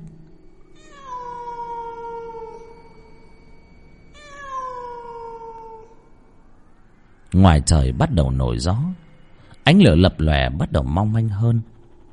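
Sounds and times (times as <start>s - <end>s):
cat wailing: 0.7s - 3.3s, 4.1s - 6.2s
speech: 7.4s - 9.0s, 9.7s - 11.7s.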